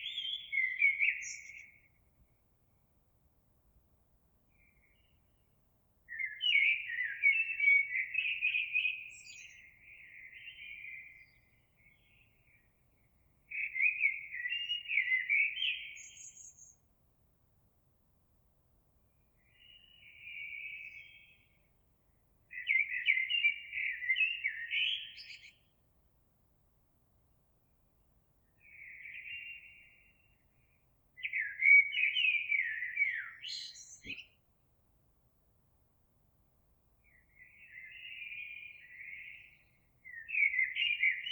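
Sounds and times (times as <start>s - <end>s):
Eurasian blackbird song: 0.0s - 1.9s, 6.1s - 12.6s, 13.5s - 16.8s, 19.4s - 21.5s, 22.5s - 25.7s, 28.5s - 30.4s, 31.2s - 34.4s, 37.0s - 41.3s
brief click: 34.0s - 34.2s.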